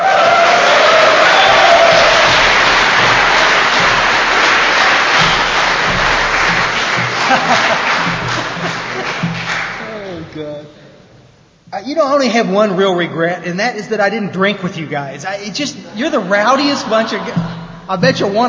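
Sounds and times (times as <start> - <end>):
audience cheering and shouting welcoming a performer: 0.0 - 9.0
audience applause welcoming a performer: 0.0 - 10.3
laughter: 0.0 - 10.4, 16.0 - 18.4
speech: 12.0 - 18.4.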